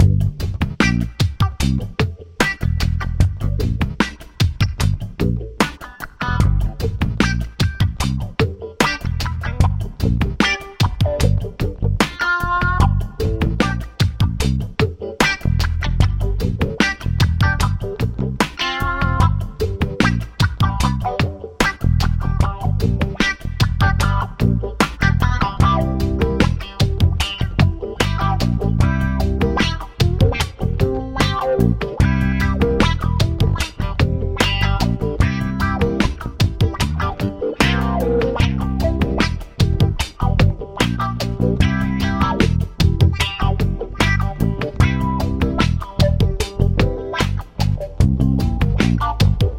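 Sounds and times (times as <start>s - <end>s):
musical solo loop: 0.0s - 49.5s.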